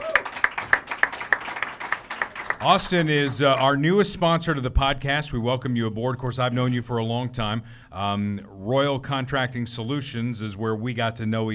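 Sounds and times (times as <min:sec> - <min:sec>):
audience applause greeting a guest: 0:00.0 - 0:03.8
speech: 0:02.6 - 0:11.5.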